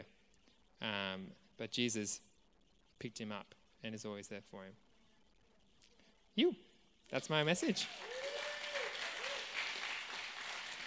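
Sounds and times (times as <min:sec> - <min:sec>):
speech: 0:00.8 - 0:02.3, 0:03.0 - 0:04.8, 0:06.4 - 0:08.1
audience applause: 0:07.2 - 0:10.8.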